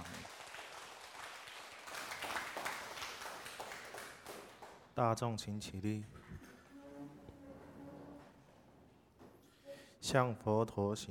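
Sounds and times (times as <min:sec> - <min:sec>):
audience applause: 0:00.0 - 0:04.8
speech: 0:05.0 - 0:06.2, 0:10.1 - 0:11.1.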